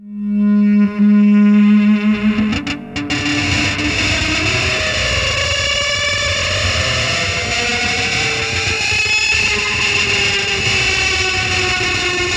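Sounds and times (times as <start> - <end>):
industrial feedback noise: 0.3 - 12.3.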